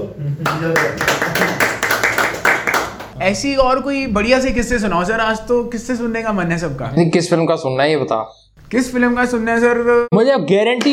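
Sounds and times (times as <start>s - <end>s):
speech: 0.2s - 1.5s, 3.2s - 10.9s
small group clapping in a steady rhythmic beat: 0.4s - 3.2s.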